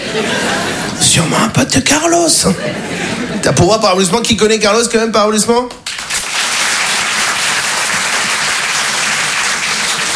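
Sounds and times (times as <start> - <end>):
laughter: 0.0 - 1.4, 2.2 - 3.8
speech: 0.2 - 5.8
large audience applauding: 5.8 - 10.1.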